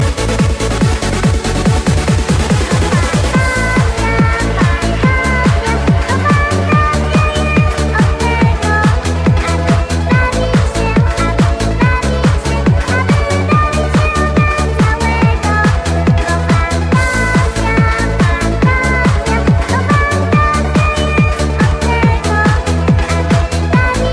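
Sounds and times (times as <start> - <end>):
disco music: 0.0 - 24.1.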